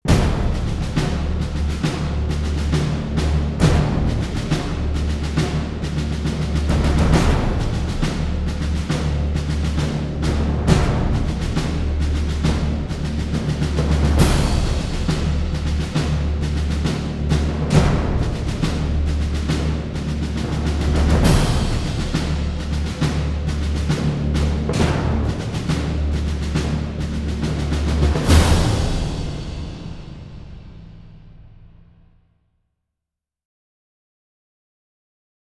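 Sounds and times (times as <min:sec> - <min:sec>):
drums: 0:00.0 - 0:32.2
orchestra playing: 0:00.1 - 0:31.6.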